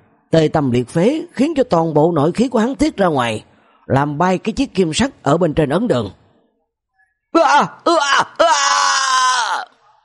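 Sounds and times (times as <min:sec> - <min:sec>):
speech: 0:00.3 - 0:06.2, 0:07.3 - 0:08.6
man wailing and moaning in agony: 0:07.4 - 0:09.8.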